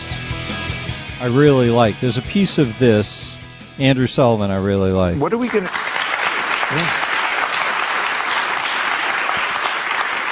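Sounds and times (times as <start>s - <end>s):
speech: 1.2s - 5.9s, 6.7s - 7.0s
audience applause in played clip: 5.2s - 10.3s.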